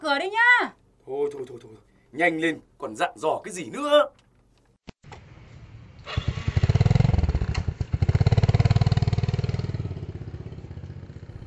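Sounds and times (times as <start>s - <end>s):
speech: 0.0s - 4.2s
motorbike engine starting and riding off: 5.1s - 11.4s.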